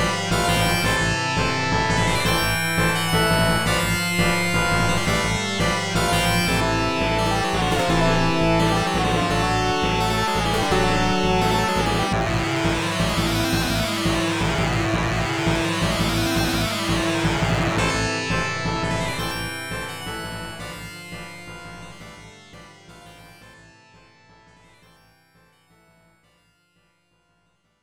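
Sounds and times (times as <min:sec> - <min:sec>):
boss battle background music: 0:00.0 - 0:20.6.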